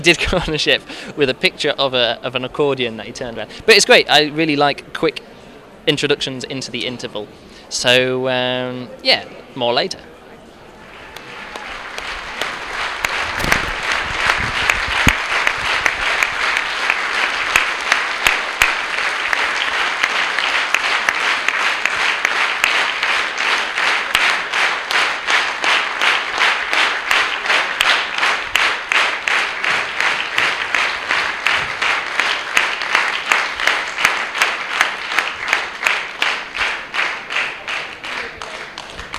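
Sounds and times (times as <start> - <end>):
speech: 0.0 - 10.1
large audience applauding at end of show: 10.9 - 39.1.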